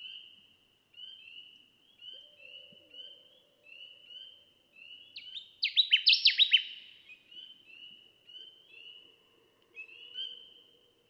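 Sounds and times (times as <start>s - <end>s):
Connecticut warbler chirpy song: 0.9s - 9.0s.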